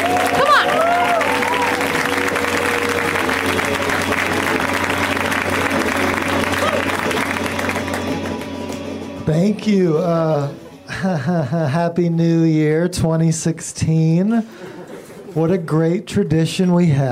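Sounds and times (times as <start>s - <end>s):
crowd cheering: 0.0s - 8.8s
audience applauding for comedian: 0.0s - 9.1s
speech: 9.3s - 14.8s, 15.4s - 17.1s
laughter: 10.8s - 12.0s, 14.4s - 15.5s.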